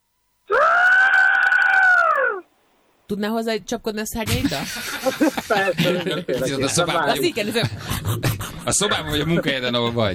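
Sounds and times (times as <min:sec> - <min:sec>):
voice imitating a pterosaur screech: 0:00.5 - 0:02.4
speech: 0:03.1 - 0:10.1
laughter: 0:04.3 - 0:09.8.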